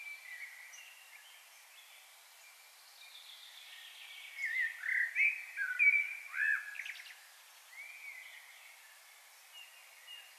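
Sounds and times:
common blackbird singing: 0.0 - 1.9, 3.0 - 10.3.

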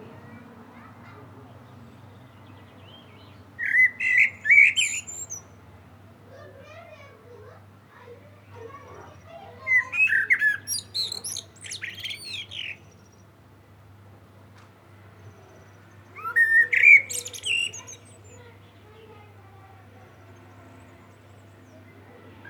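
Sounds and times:
common blackbird singing: 1.7 - 5.5, 8.8 - 13.3, 15.3 - 19.2, 20.4 - 22.4.

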